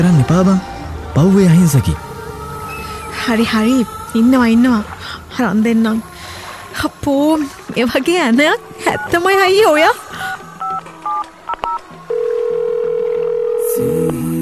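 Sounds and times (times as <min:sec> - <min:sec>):
speech: 0:00.0 - 0:02.1, 0:03.2 - 0:06.1, 0:06.8 - 0:10.0
touch-tone keypad beeps as a call is made: 0:08.8 - 0:09.7, 0:10.6 - 0:11.8
long steady electronic telephone tones: 0:08.8 - 0:14.3.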